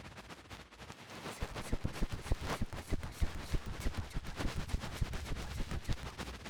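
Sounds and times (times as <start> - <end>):
ear cleaning with a bonten ASMR: 1.4 - 6.3.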